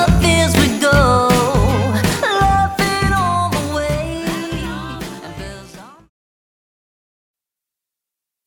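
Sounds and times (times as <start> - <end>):
Christmas song: 0.0 - 6.0.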